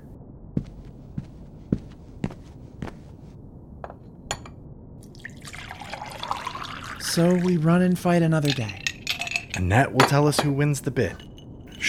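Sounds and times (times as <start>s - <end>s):
liquid dripping while a drink is mixed: 5.0s - 10.1s
speech: 7.2s - 8.8s, 9.5s - 11.8s.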